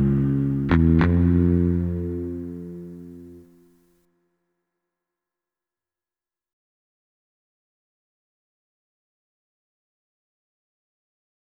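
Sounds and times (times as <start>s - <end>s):
minimal ethnic rainforest groove advertising music: 0.0s - 3.4s.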